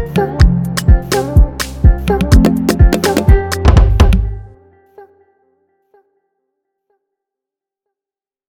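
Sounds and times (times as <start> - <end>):
beat: 0.1 - 4.5.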